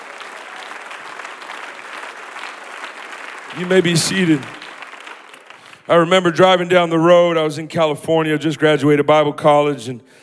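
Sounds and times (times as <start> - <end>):
audience clapping: 0.0 - 7.0
speech: 3.6 - 4.6, 5.9 - 10.2.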